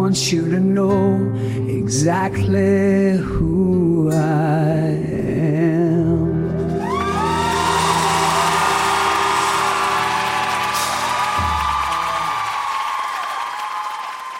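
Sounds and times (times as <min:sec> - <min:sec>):
speech: 0:00.1 - 0:05.7
applause: 0:06.9 - 0:14.3.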